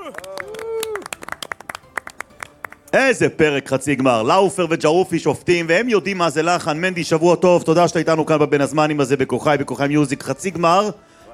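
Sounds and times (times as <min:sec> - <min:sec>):
audience clapping for a wedding singer serving as a judge: 0:00.0 - 0:02.9
speech: 0:00.1 - 0:00.4, 0:02.9 - 0:11.1.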